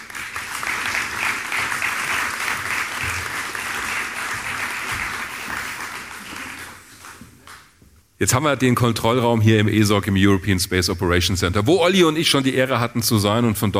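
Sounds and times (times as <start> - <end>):
large audience applause: 0.0 - 7.7
speech: 8.2 - 13.7.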